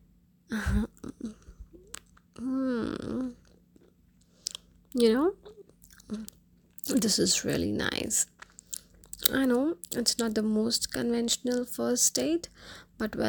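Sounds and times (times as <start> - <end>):
person chewing food: 1.0 - 7.6, 8.2 - 10.3
speech: 5.0 - 5.4, 7.0 - 8.4, 9.4 - 13.2.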